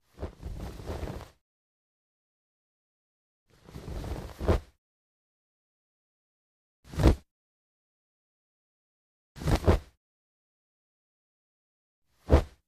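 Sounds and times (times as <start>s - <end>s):
cloth flapping: 0.1s - 1.4s, 3.6s - 4.7s, 9.4s - 9.9s, 12.3s - 12.6s.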